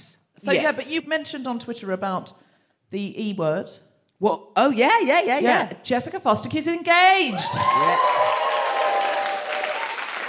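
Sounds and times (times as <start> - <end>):
speech: 0.0 - 8.4
audience round of applause: 7.4 - 10.2.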